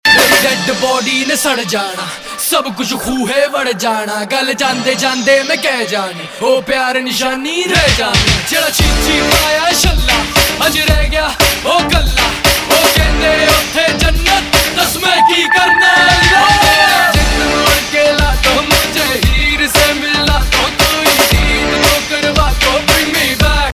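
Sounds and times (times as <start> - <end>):
Punjabi pop rap ringtone music: 0.0 - 23.7.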